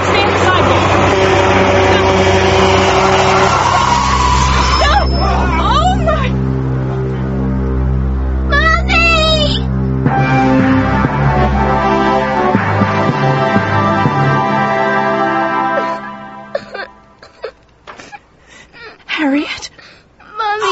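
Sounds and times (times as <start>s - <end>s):
truck brakes squealing: 0.0s - 9.7s
heavy truck engine rumbling: 0.0s - 20.7s.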